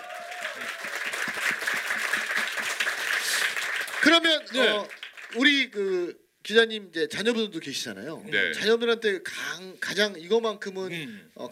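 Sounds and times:
room full of people applauding: 0.0s - 5.6s
speech: 4.0s - 11.5s.

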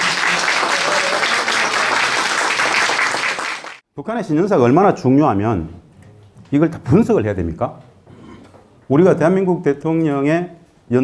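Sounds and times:
audience applause welcoming speaker: 0.0s - 3.8s
speech: 4.0s - 5.8s, 6.5s - 7.9s, 8.9s - 11.0s.

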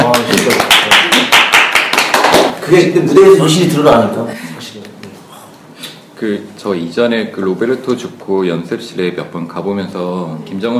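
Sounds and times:
hand clapping: 0.0s - 2.6s
speech: 2.7s - 4.4s, 6.2s - 10.7s.

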